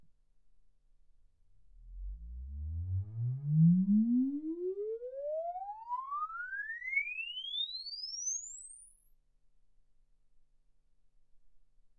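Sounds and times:
exponential sine sweep from 10 Hz to 24 kHz: 0:01.9 - 0:09.5.

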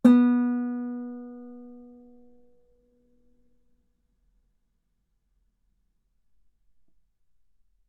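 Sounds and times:
guitar note B3: 0:00.0 - 0:02.1.

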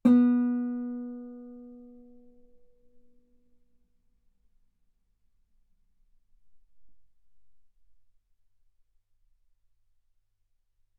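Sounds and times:
guitar note B3: 0:00.0 - 0:02.4.

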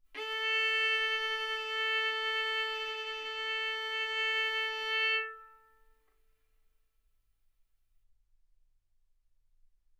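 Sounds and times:
violin bowed mezzo-forte on the A string, A4 and B4: 0:00.2 - 0:05.8.

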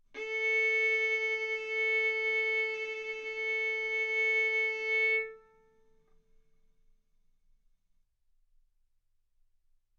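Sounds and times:
violin arco on A string: 0:00.2 - 0:05.8.

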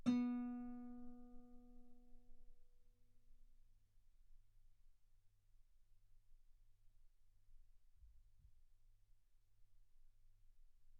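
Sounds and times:
guitar B3 note on B string played fortissimo: 0:00.0 - 0:01.4.

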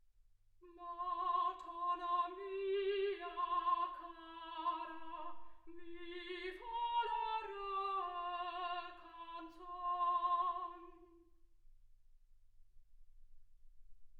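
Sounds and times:
soprano singing: 0:00.6 - 0:11.3.

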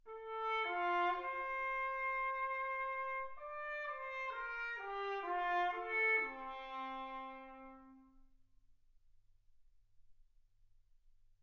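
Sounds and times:
trumpet: 0:00.0 - 0:08.3.

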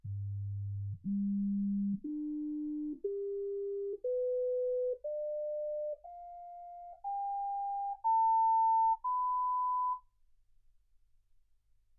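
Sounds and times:
sine tones: 0:01.0 - 0:10.1.

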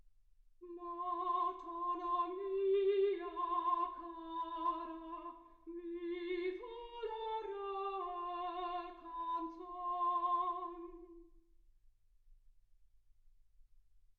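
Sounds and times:
soprano singing: 0:00.6 - 0:11.4.

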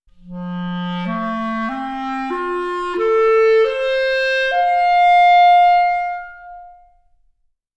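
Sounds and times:
clarinet: 0:00.1 - 0:07.2.

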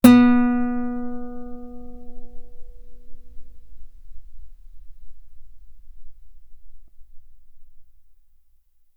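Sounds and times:
guitar B3 note on B string played fortissimo: 0:00.0 - 0:07.0.

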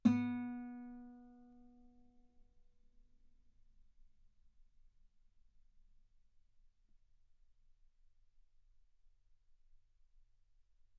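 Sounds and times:
guitar note B3: 0:00.0 - 0:01.4.

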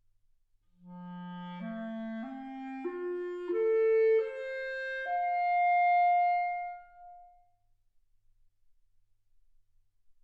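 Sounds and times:
clarinet: 0:00.8 - 0:07.5.

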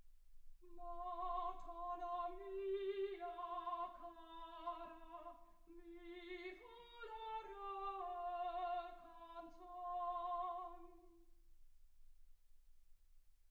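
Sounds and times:
soprano singing: 0:00.6 - 0:11.3.

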